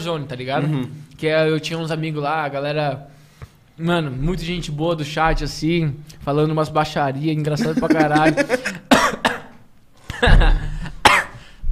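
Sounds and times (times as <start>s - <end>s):
speech: 0.0s - 3.2s, 3.8s - 8.7s
breathy laughter: 7.6s - 8.9s, 10.1s - 11.0s
person coughing after choking on food: 7.6s - 9.6s, 10.4s - 11.5s.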